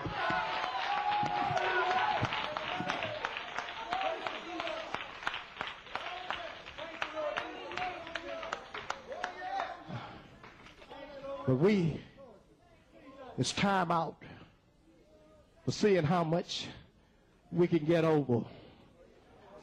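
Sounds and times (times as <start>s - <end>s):
audience clapping hands: 0.0s - 10.9s
speech: 11.5s - 12.1s, 13.4s - 14.3s, 15.7s - 16.8s, 17.5s - 18.6s.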